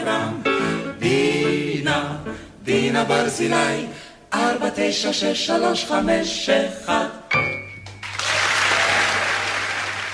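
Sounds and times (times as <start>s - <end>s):
speech: 0.1s - 1.4s, 2.0s - 7.4s
audience applause after a live song: 8.0s - 10.1s.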